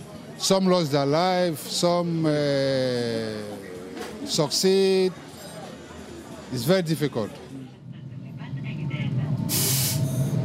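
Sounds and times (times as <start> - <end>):
speech: 0.4 - 5.3, 6.5 - 7.6
interior of a train heading north to Rabat, Morocco: 7.8 - 10.4
rushing hiss: 9.5 - 10.2.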